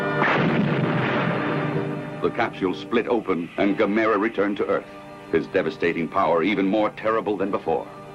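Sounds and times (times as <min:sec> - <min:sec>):
explosion of rocket crashing into a meteor: 0:00.2 - 0:02.1
speech: 0:02.3 - 0:08.0.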